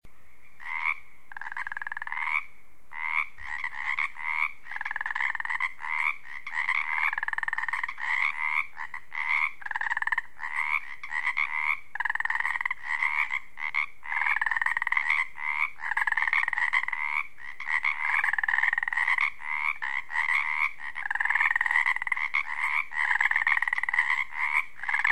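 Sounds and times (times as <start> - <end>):
Pacific chorus frog chorus in a wetland: 0.2 - 25.0.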